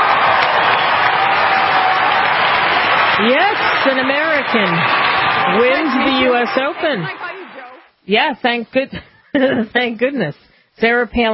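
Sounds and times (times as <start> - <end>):
applause: 0.0 - 7.9
speech: 3.2 - 7.2, 8.0 - 11.3.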